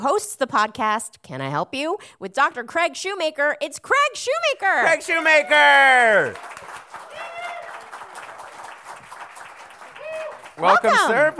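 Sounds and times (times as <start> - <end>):
speech: 0.0 - 6.9, 10.6 - 11.3
voices cheering: 4.8 - 8.7, 9.7 - 11.3
audience applauding: 4.8 - 11.3
rising whoop: 7.1 - 7.9, 10.0 - 10.4.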